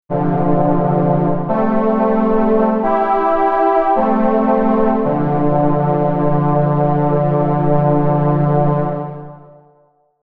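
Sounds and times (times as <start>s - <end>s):
Solina string synthesizer on Akai MPC 2.10: 0.1s - 9.3s.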